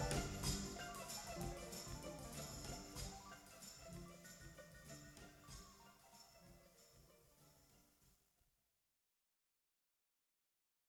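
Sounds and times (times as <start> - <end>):
strings: 0.0 - 8.0.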